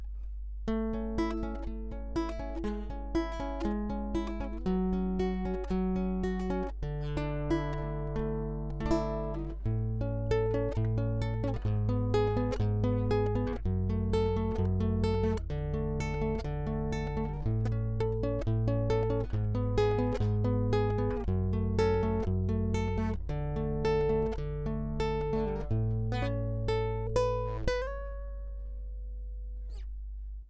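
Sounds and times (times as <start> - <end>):
fingerpicked guitar with piezo pickup: 0.0 - 30.0.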